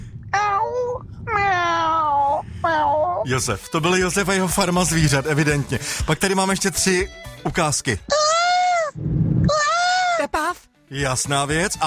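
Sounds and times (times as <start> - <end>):
person's voice imitating a cat meowing: 0.4 - 3.3, 8.1 - 10.4
speech: 3.2 - 8.3, 10.9 - 11.8.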